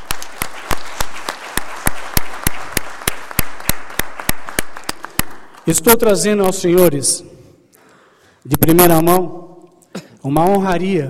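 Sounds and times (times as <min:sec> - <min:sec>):
audience applause: 0:00.0 - 0:05.7
speech: 0:05.6 - 0:07.3, 0:08.7 - 0:09.4, 0:10.2 - 0:11.0.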